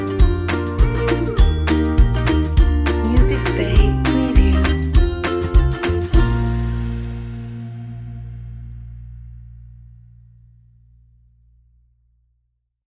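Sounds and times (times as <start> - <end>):
happy upbeat ukulele music: 0.0 - 7.9.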